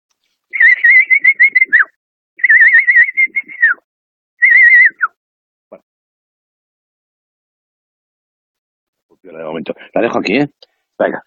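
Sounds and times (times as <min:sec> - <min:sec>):
person whistling a bird-call lure: 0:00.5 - 0:05.2
speech: 0:09.2 - 0:11.2.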